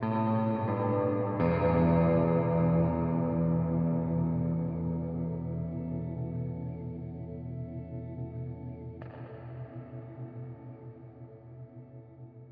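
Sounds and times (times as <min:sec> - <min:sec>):
guitar: 0:00.0 - 0:12.5.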